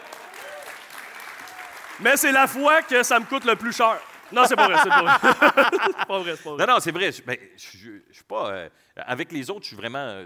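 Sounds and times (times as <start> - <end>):
audience applause: 0.0 - 6.0
speech: 2.0 - 10.2
laughter: 4.3 - 6.6.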